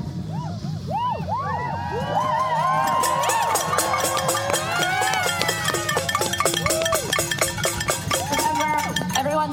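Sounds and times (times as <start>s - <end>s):
crowd cheering and shouting at a New Year's Eve noise demonstration: 0.2s - 9.5s
rapid clatter: 2.8s - 9.5s.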